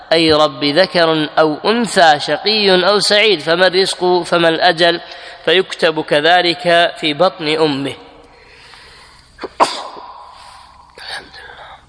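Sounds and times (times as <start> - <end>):
speech: 0.1 - 8.0, 9.4 - 9.9
sneeze: 9.4 - 10.3.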